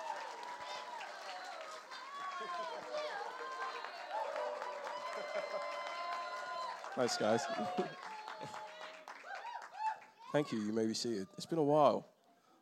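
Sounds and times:
audience applause: 0:00.0 - 0:10.7
speech: 0:02.4 - 0:06.0, 0:06.9 - 0:08.6, 0:10.3 - 0:12.1.

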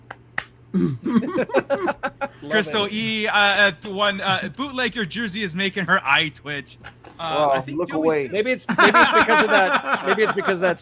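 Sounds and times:
hand claps: 0:00.0 - 0:00.6
low steady hum: 0:00.0 - 0:10.8
speech: 0:00.7 - 0:10.8
people talking and laughing: 0:01.1 - 0:04.8, 0:07.0 - 0:10.8.

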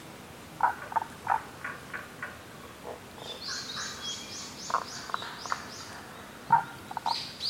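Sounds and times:
Tago's brown frog croaking: 0:00.6 - 0:04.0, 0:04.6 - 0:05.8, 0:06.5 - 0:07.3.

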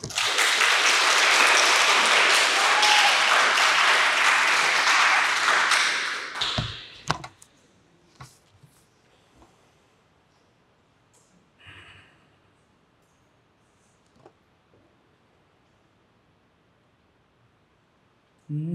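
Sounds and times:
audience applause for poet: 0:00.0 - 0:07.1.

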